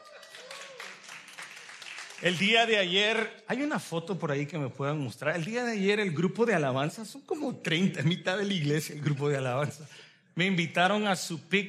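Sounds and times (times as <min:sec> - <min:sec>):
audience applause: 0:00.0 - 0:02.9
speech: 0:02.2 - 0:11.6.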